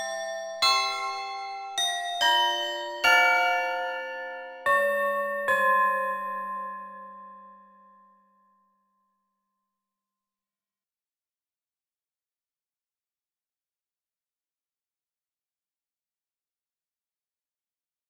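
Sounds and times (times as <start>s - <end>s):
glockenspiel: 0.0s - 8.9s.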